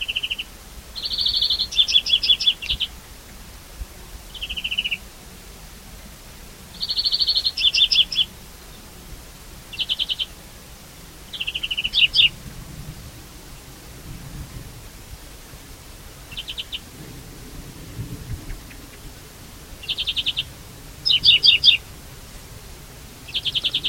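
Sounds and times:
European greenfinch calling with buzzy notes and twittering: 0.0 - 2.9, 4.3 - 5.0, 6.7 - 8.3, 9.7 - 10.4, 11.3 - 12.3, 19.8 - 21.8, 23.3 - 23.8.

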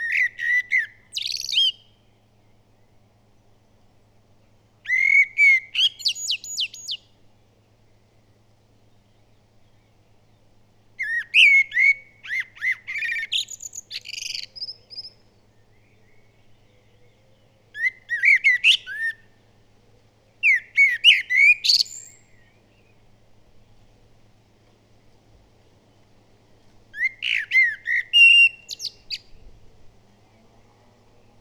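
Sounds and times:
common blackbird song of fluted whistles: 0.0 - 2.2, 4.8 - 7.2, 11.0 - 19.4, 20.4 - 23.0, 26.9 - 29.6
hissy background: 0.8 - 31.3.

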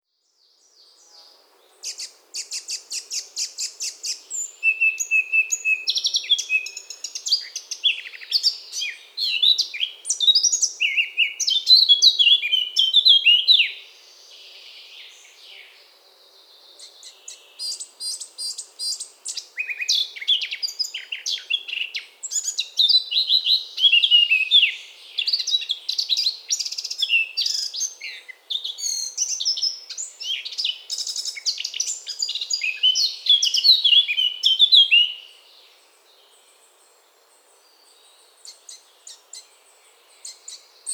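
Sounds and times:
Eurasian blackcap singing: 1.8 - 13.8, 16.8 - 35.3.

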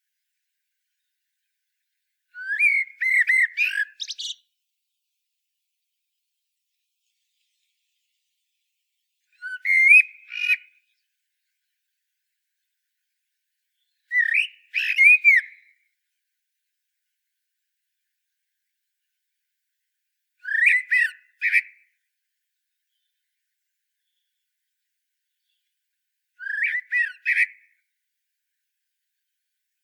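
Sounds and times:
common blackbird whistled song: 2.3 - 4.5, 9.3 - 10.9, 13.8 - 15.8, 20.4 - 21.8, 26.4 - 27.8.

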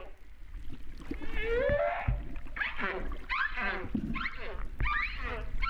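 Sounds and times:
humpback whale wailing: 1.2 - 5.6.

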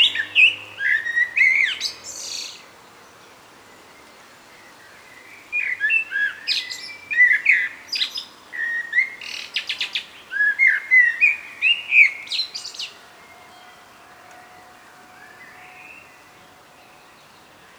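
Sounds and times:
common blackbird singing: 0.0 - 2.7, 5.0 - 13.0.

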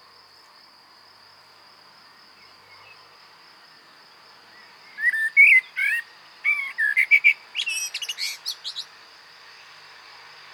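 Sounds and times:
common blackbird singing: 4.6 - 9.0.

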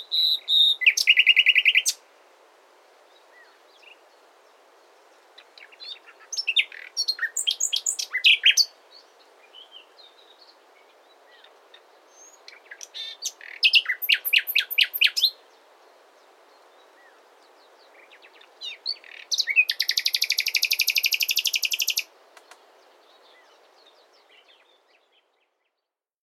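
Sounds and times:
common nightingale Luscinia megarhynchos song: 0.0 - 26.1.

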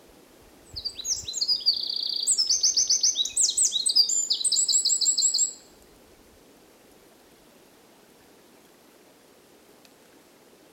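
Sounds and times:
low background noise: 0.0 - 10.7
Eurasian wren singing trills: 0.7 - 5.6.

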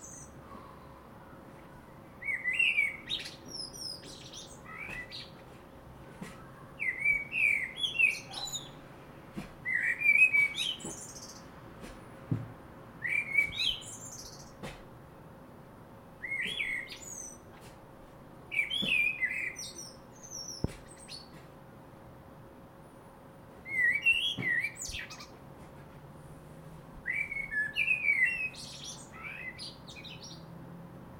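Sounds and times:
common blackbird singing: 0.0 - 5.4, 6.3 - 8.8, 9.6 - 11.5, 13.0 - 14.6, 16.2 - 17.5, 18.5 - 21.4, 23.6 - 25.4, 27.0 - 30.5
soft background hum: 0.0 - 31.1.

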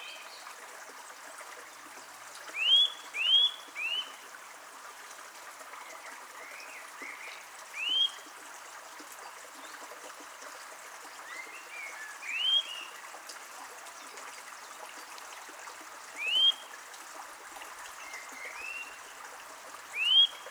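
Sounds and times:
running water: 0.0 - 20.5
Eurasian nuthatch whistled calls: 7.8 - 8.2, 12.3 - 12.9, 16.2 - 16.6, 20.0 - 20.4.

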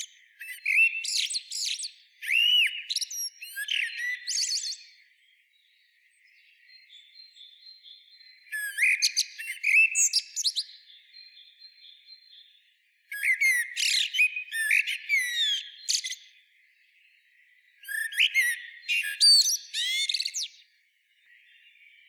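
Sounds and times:
common blackbird singing: 0.0 - 22.0.

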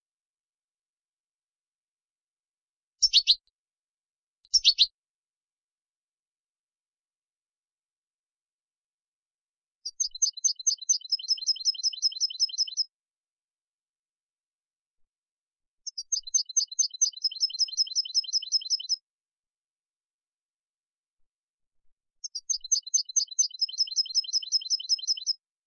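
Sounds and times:
European goldfinch Carduelis carduelis singing: 3.0 - 3.4, 4.5 - 4.9, 9.8 - 12.9, 15.8 - 19.0, 22.2 - 25.4.

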